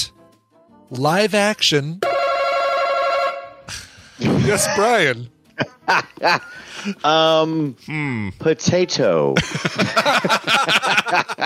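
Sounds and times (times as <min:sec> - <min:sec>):
speech: 0:00.9 - 0:02.1, 0:03.7 - 0:11.4
quiz buzzer: 0:02.0 - 0:03.6
laughter: 0:04.2 - 0:07.0, 0:09.4 - 0:11.4.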